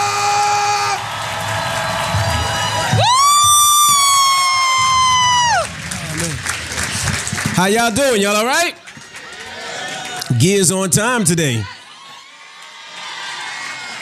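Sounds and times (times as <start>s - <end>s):
high-pitched whoop: 0.0s - 5.8s
crowd cheering and clapping: 0.0s - 13.9s
speech: 7.6s - 8.8s, 10.3s - 11.7s.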